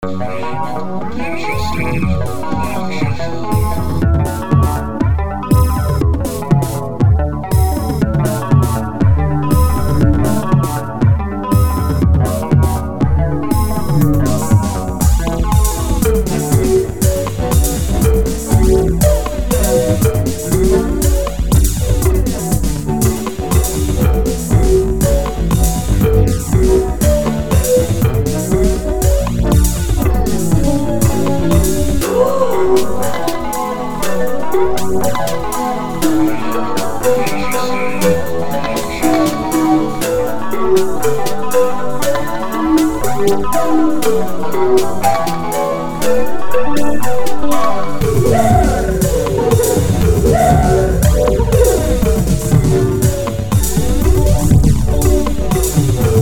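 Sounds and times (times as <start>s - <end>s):
samba music: 0.0s - 56.2s.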